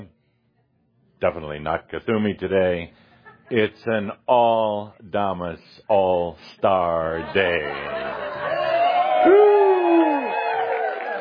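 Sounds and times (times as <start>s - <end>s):
speech: 1.2s - 8.2s, 9.2s - 9.4s
laughter: 6.7s - 10.3s
audience cheering and applause: 7.6s - 11.1s
loud high whoop: 8.4s - 11.1s.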